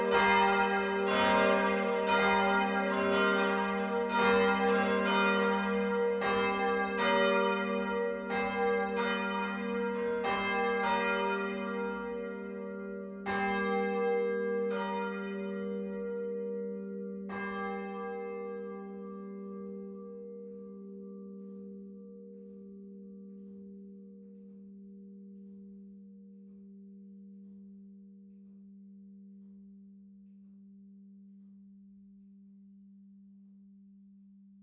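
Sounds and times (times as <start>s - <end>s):
church bells ringing in Friedberg: 0.0s - 25.2s.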